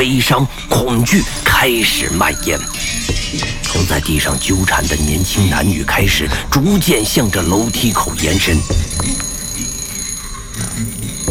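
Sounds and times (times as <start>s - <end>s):
speech: 0.0s - 9.8s
telephone ringing with shrill electronic trill: 1.2s - 11.2s
low rumble of noise: 3.1s - 9.2s.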